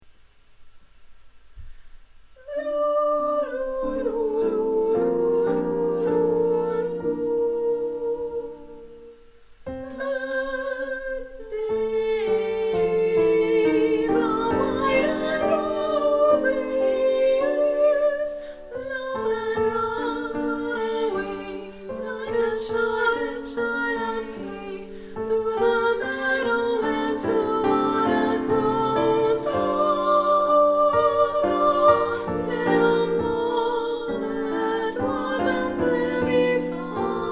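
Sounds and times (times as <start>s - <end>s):
tenor singing: 2.4s - 37.2s.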